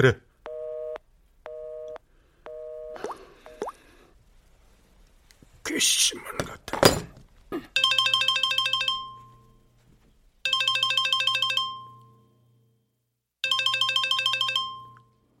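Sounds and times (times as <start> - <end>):
speech: 0.0 - 0.2, 5.7 - 7.8
phone ringtone for incoming call: 0.5 - 3.6, 7.8 - 9.6, 10.5 - 12.4, 13.4 - 15.2.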